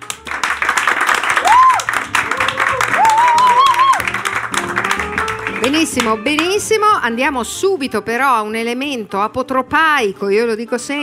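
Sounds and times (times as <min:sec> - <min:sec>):
audience applause: 0:00.0 - 0:06.5
speech: 0:05.7 - 0:11.0.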